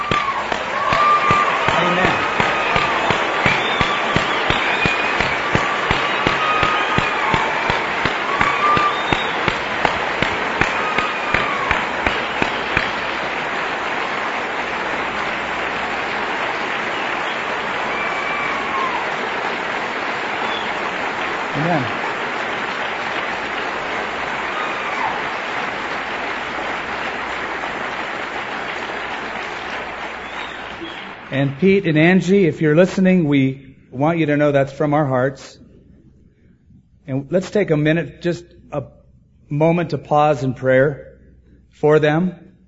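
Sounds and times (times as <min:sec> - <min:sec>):
large standing crowd applauding: 0:00.0 - 0:32.4
speech: 0:31.4 - 0:35.6, 0:37.1 - 0:41.1, 0:41.7 - 0:42.4.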